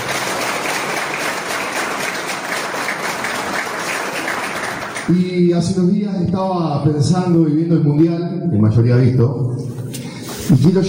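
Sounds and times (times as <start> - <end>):
crowd applause: 0.0 - 5.3
speech: 5.1 - 9.8, 10.5 - 10.8.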